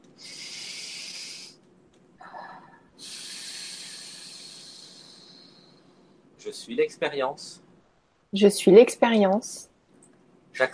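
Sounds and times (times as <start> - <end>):
deep breath: 0.2 - 1.6, 2.2 - 6.3
speech: 6.4 - 7.6, 8.3 - 9.7.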